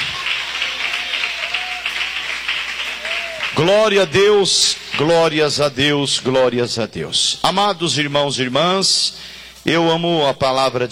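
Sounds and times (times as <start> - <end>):
audience clapping: 0.0 - 4.6
speech: 3.6 - 10.9.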